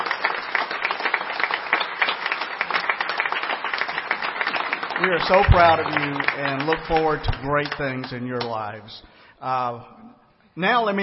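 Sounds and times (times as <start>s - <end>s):
audience applause for graduates: 0.0s - 8.7s
speech: 5.0s - 11.0s.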